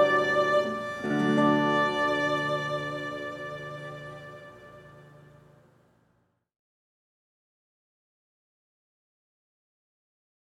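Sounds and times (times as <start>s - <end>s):
violin playing a guitar arrangement: 0.0s - 5.7s.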